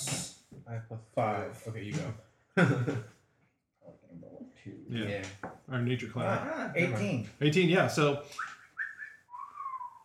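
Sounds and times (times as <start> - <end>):
speech: 0.7 - 3.2, 4.1 - 8.5
person whistling a birdlike call: 8.4 - 10.0.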